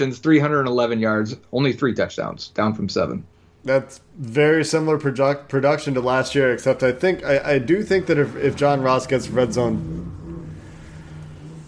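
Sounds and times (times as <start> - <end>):
speech: 0.0 - 10.2
motorcycle passing by: 7.8 - 11.6.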